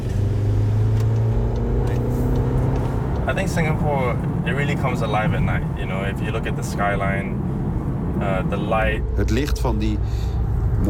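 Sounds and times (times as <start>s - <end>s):
race car engine droning while driving in Singapore in the evening: 0.0s - 10.8s
speech: 3.3s - 7.4s, 8.2s - 10.8s.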